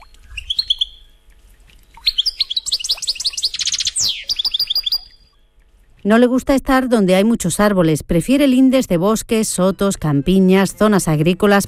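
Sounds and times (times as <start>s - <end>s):
European goldfinch song with trills: 0.0s - 1.2s, 1.8s - 5.4s
speech: 6.0s - 11.6s.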